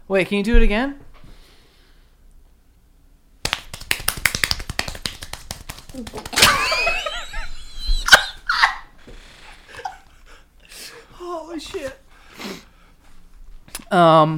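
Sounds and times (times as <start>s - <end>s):
speech: 0.1s - 1.0s, 6.0s - 6.4s, 11.6s - 12.0s, 13.9s - 14.3s
rapid hand clapping: 3.4s - 7.2s
people laughing: 6.3s - 8.9s.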